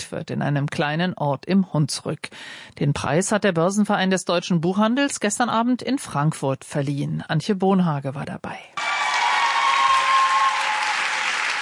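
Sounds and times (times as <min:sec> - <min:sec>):
speech: 0:00.1 - 0:09.0
applause in the Kaisersaal of the Frankfurt Römer: 0:08.8 - 0:11.6
cheering in the Kaisersaal of the Frankfurt Römer: 0:08.8 - 0:11.6.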